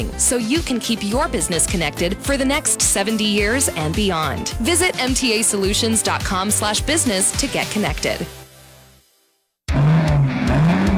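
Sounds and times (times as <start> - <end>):
speech: 0.0 - 8.4
race car engine roaring at Alaska Raceway Park: 9.7 - 10.9.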